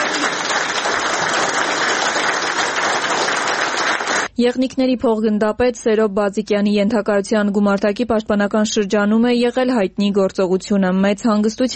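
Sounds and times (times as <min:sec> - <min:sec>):
audience applause at a ceremony honouring a military commander: 0:00.0 - 0:04.3
speech: 0:04.4 - 0:11.7.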